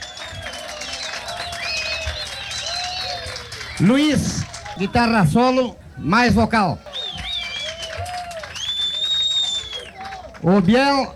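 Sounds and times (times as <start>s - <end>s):
shrill whistles: 0.0s - 4.6s, 6.9s - 10.2s
audience applause for band member: 0.0s - 11.1s
cheering: 0.0s - 11.1s
speech: 3.8s - 6.8s, 10.4s - 11.1s.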